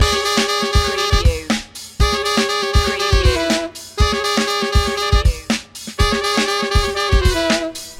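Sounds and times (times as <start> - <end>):
funky loop: 0.0 - 7.9.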